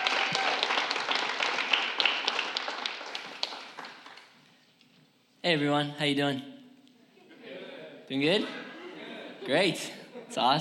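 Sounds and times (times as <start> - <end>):
audience applauding: 0.0 - 4.4
speech: 5.4 - 6.5, 8.1 - 8.6, 9.5 - 10.6
laughter: 7.1 - 10.6.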